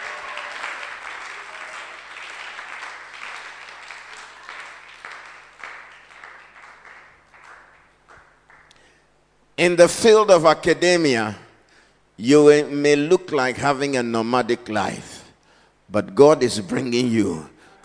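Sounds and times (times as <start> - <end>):
audience clapping: 0.0 - 8.9
speech: 9.6 - 11.4, 12.2 - 15.1, 15.9 - 17.5.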